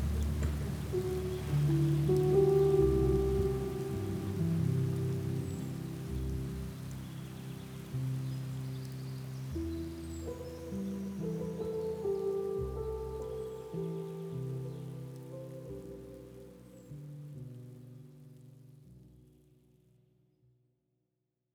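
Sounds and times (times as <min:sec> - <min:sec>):
thunderstorm: 0:00.0 - 0:05.0
heavy rain downpour: 0:00.0 - 0:17.0.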